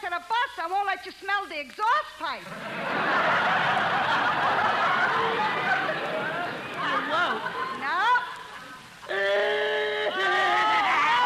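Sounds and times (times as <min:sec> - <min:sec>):
speech: 0:00.2 - 0:05.8
laughter: 0:02.5 - 0:11.2
crying: 0:09.0 - 0:11.2.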